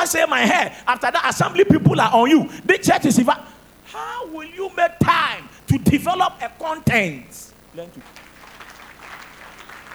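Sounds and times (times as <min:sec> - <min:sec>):
speech: 0:00.0 - 0:08.2
audience clapping: 0:07.8 - 0:09.9.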